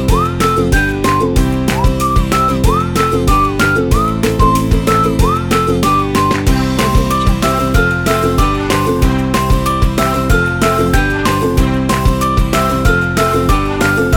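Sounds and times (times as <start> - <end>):
upbeat whistle: 0.0 - 9.0
ukulele: 0.0 - 14.1.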